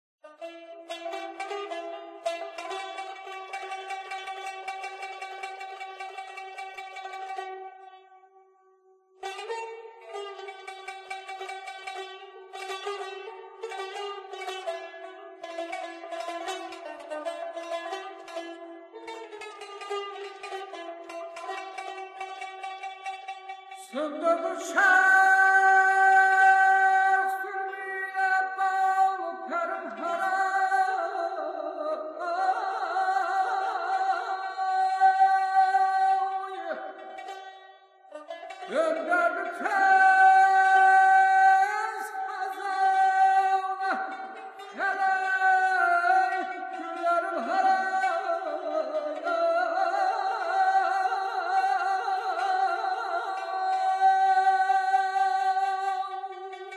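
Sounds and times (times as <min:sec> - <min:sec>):
bayati kurd maqam melody: 0:00.2 - 0:56.7.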